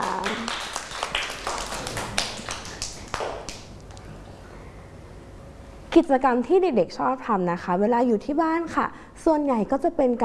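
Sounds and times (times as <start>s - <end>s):
small group clapping: 0.0s - 4.0s
speech: 6.0s - 10.2s.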